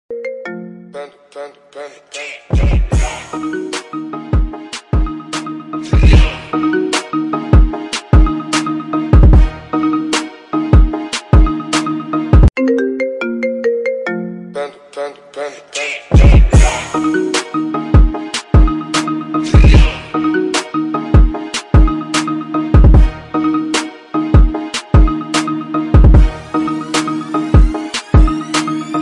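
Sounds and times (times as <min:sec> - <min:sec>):
marimba remix: 0:00.1 - 0:01.0, 0:02.6 - 0:14.9, 0:16.1 - 0:29.0.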